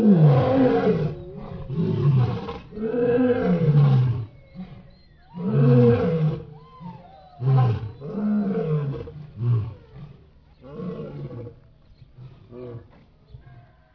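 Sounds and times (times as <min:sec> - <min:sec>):
lion pack: 0:00.0 - 0:13.9.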